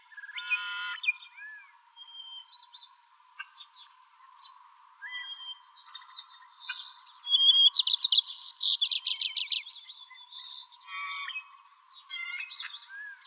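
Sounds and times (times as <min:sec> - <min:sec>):
white-crowned sparrow song: 0:00.0 - 0:13.2.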